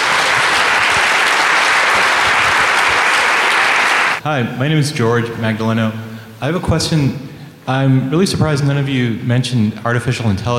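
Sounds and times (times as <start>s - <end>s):
audience applause: 0.0s - 4.2s
speech: 4.2s - 10.5s.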